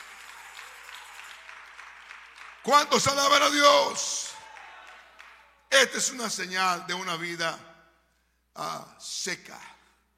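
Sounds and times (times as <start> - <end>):
audience applauding: 0.0 - 5.6
speech: 2.6 - 4.3, 5.7 - 7.7, 8.6 - 9.8.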